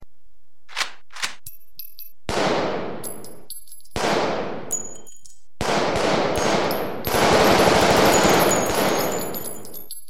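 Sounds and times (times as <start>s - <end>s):
gunshots: 2.3s - 3.0s, 4.0s - 4.7s, 5.6s - 9.6s.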